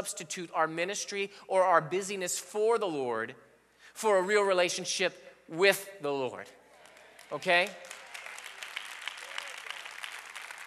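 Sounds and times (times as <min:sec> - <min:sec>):
speech: 0:00.0 - 0:06.6, 0:07.3 - 0:08.0
faint scattered claps from an audience: 0:06.7 - 0:10.6.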